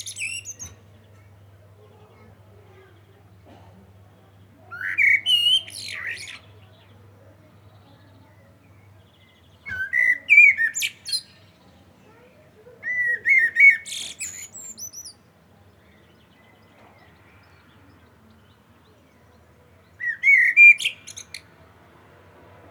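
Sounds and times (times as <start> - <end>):
Common blackbird singing: 0.0 - 0.8, 4.8 - 6.5, 9.6 - 11.4, 12.8 - 15.2, 20.0 - 21.4.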